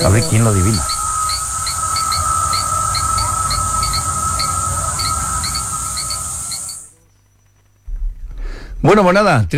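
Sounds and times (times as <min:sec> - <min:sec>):
speech: 0:00.0 - 0:01.0, 0:08.8 - 0:09.5
cicada buzzing: 0:00.0 - 0:07.0
low steady rumble: 0:00.0 - 0:07.0, 0:07.7 - 0:09.5
cricket chirps: 0:00.0 - 0:09.3.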